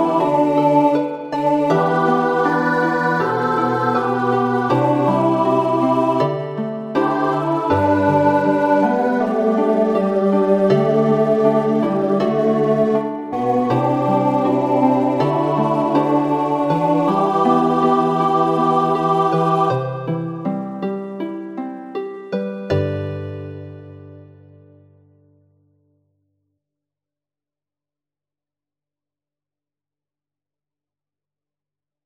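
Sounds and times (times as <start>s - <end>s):
folk tune: 0.0s - 24.7s.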